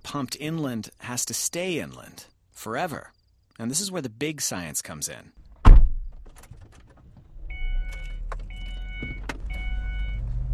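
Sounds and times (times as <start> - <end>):
speech: 0.1 - 5.4
car engine and road rumble driving into the desert: 5.4 - 10.5.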